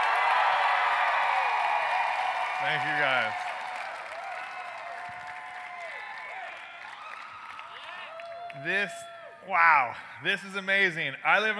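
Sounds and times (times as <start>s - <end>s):
audience applauding to welcome a keynote speaker: 0.0s - 9.2s
crowd whooping and shouting to welcome a keynote speaker: 0.0s - 10.1s
speech: 2.6s - 3.5s, 8.6s - 11.5s.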